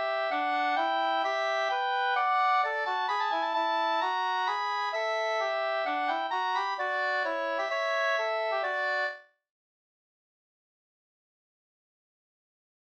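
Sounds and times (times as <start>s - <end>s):
minuet: 0.0s - 9.3s.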